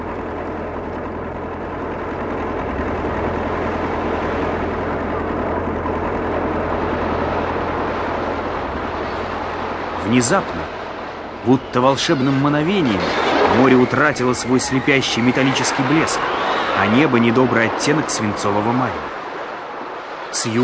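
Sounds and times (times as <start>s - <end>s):
heavy ship diesel engines knocking: 0.0s - 11.7s
speech: 10.1s - 10.8s, 11.4s - 19.2s, 20.3s - 20.6s.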